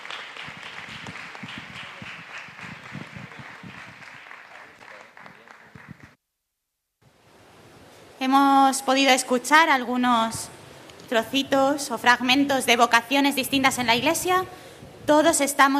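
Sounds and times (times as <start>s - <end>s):
audience applause: 0.0s - 6.2s
speech: 8.2s - 10.5s, 11.1s - 15.7s.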